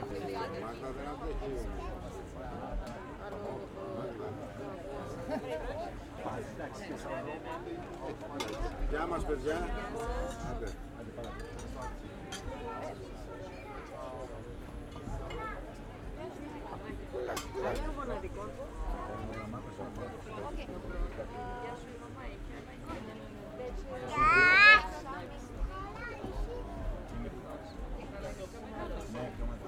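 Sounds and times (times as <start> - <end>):
conversation in different languages: 0.0 - 29.6
restaurant walla: 0.0 - 29.6
kids playing: 24.0 - 25.1.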